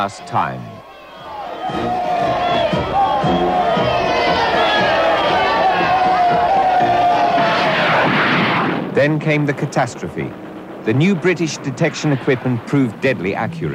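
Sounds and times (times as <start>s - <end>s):
speech: 0.0s - 0.8s, 9.0s - 13.7s
crowd cheering in home port: 0.0s - 13.7s.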